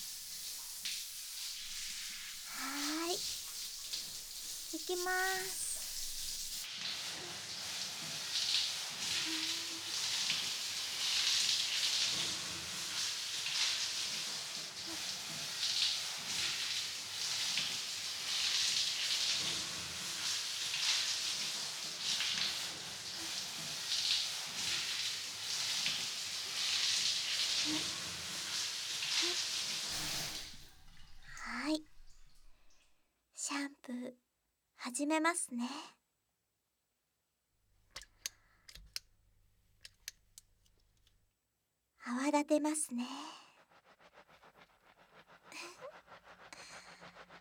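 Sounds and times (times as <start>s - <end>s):
water rinsing hair at a salon: 0.0s - 32.9s, 43.6s - 47.3s
speech: 4.8s - 5.6s, 35.1s - 36.0s, 42.6s - 43.4s.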